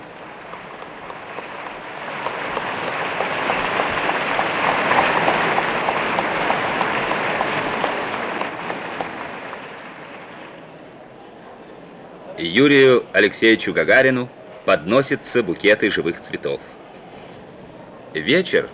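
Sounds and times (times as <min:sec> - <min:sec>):
audience standing and applauding: 0:00.0 - 0:11.0
speech: 0:12.4 - 0:16.8, 0:18.1 - 0:18.7.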